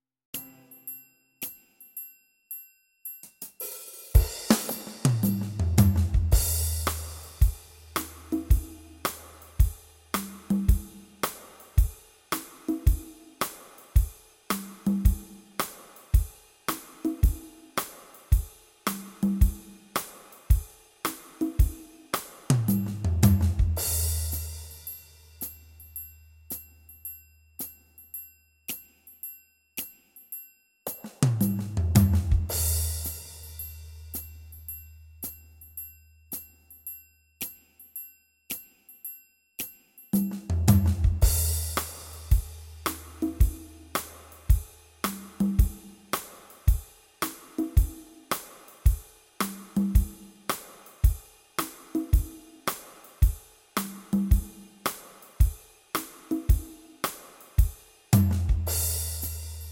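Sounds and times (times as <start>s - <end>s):
music beat: 3.4s - 24.6s, 30.9s - 34.3s, 40.2s - 55.3s, 58.2s - 59.4s.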